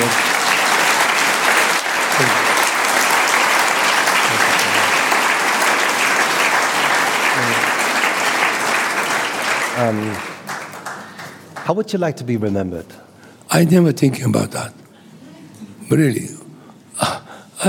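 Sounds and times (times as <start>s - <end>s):
audience applause: 0.0s - 11.7s
speech: 9.8s - 10.3s, 11.7s - 14.8s, 15.9s - 16.4s, 17.0s - 17.6s.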